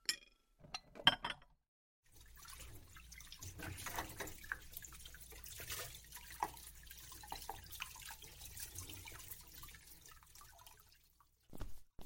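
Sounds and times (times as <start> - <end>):
dishes being cleared: 0.1 - 1.5
washing fruit under tap: 2.1 - 11.5.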